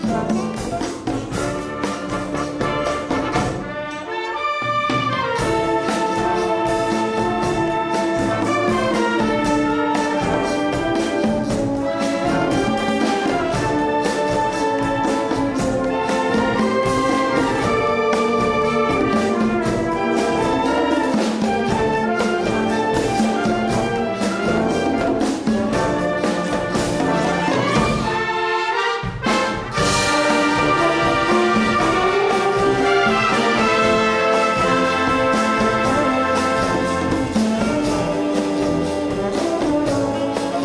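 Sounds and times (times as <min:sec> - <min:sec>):
Hungarian orchestra playing in a hall with large curtains: 0:00.0 - 0:40.6.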